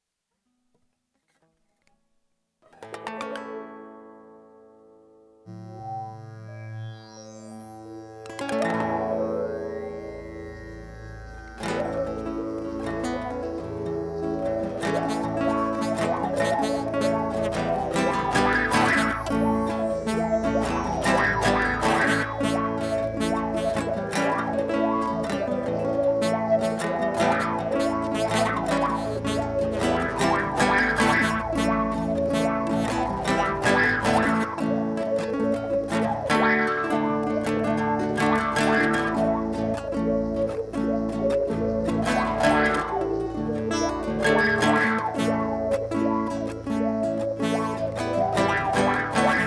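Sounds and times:
instrumental music: 2.7 - 49.4.

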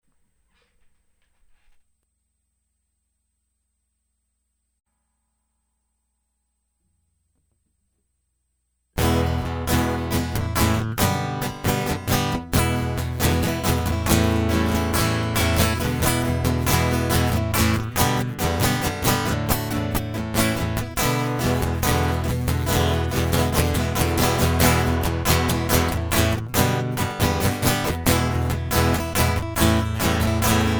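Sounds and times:
guitar loop: 9.0 - 30.7.

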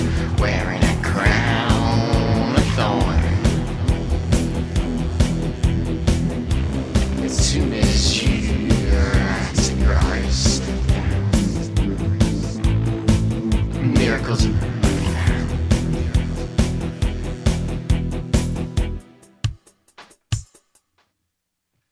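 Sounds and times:
alternative rock music: 0.0 - 20.0.

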